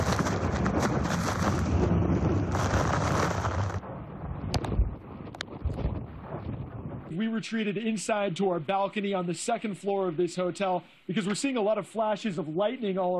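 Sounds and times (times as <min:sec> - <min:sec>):
hurricane winds: 0:00.0 - 0:08.3
speech: 0:07.4 - 0:13.1.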